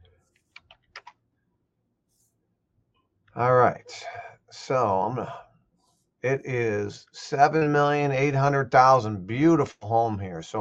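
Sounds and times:
typing an address on a computer keyboard: 0:00.4 - 0:01.2
speech: 0:03.4 - 0:05.4, 0:06.2 - 0:10.5.

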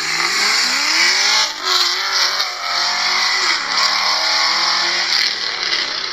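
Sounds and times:
Camaro exhaust roaring on drive-by pass: 0:00.0 - 0:06.1.

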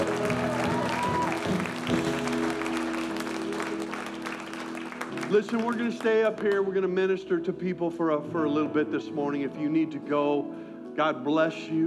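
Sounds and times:
audience applauding: 0:00.0 - 0:06.9
speech: 0:05.3 - 0:11.8.

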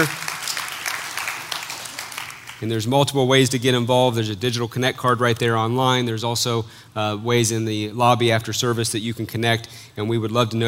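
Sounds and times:
speech: 0:00.0 - 0:00.2, 0:02.6 - 0:10.6
audience hand clap: 0:00.0 - 0:02.7.

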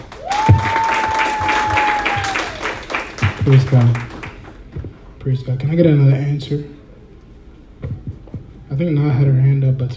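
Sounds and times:
audience applause: 0:00.0 - 0:04.6
speech: 0:03.4 - 0:04.1, 0:05.2 - 0:06.8, 0:08.8 - 0:09.9.

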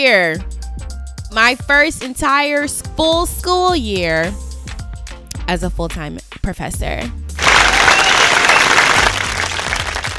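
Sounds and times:
speech: 0:00.0 - 0:00.5, 0:01.3 - 0:04.4, 0:05.5 - 0:07.2
crowd applauding sound effect: 0:07.4 - 0:10.1.

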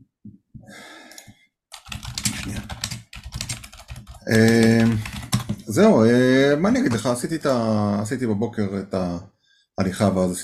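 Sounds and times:
keyboard typing a message: 0:01.7 - 0:05.7
speech: 0:04.3 - 0:05.1, 0:05.7 - 0:10.4.

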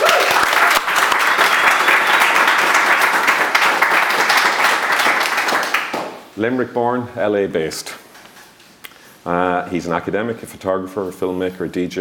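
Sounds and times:
audience applause welcoming a guest: 0:00.0 - 0:06.2
speech: 0:06.4 - 0:08.0, 0:09.2 - 0:11.9.

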